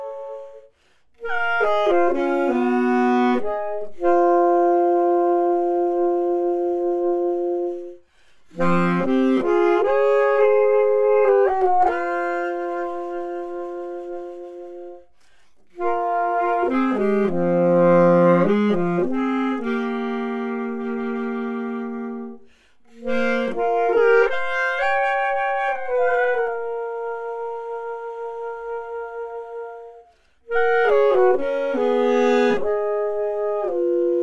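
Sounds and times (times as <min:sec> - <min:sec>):
musical accompaniment: 0:00.0 - 0:34.2.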